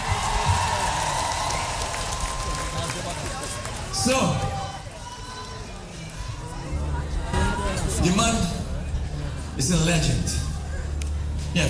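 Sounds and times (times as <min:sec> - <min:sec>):
steady dense clapping from a crowd: 0:00.0 - 0:05.7
faint murmur of voices: 0:00.0 - 0:11.6
speech: 0:04.0 - 0:04.5, 0:09.6 - 0:10.5.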